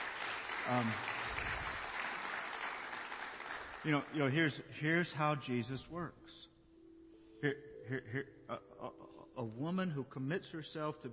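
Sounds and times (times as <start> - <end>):
audience applause: 0.0 - 4.2
speech: 0.7 - 1.1, 3.8 - 6.5, 7.4 - 11.1.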